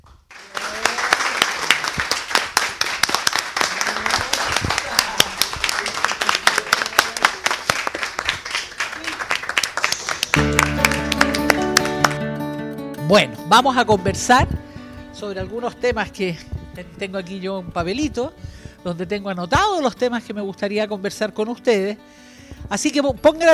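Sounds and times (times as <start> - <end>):
audience applauding loudly: 0.0 - 12.2
speech: 13.1 - 14.6, 15.2 - 23.5.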